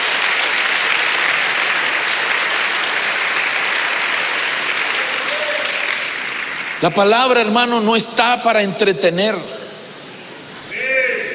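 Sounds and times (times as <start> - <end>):
audience applause: 0.0 - 7.5
speech: 6.8 - 9.6.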